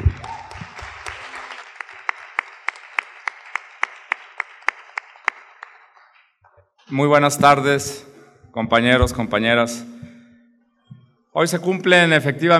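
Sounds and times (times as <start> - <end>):
audience applause: 0.0 - 6.3
speech: 6.9 - 10.0, 11.4 - 12.5.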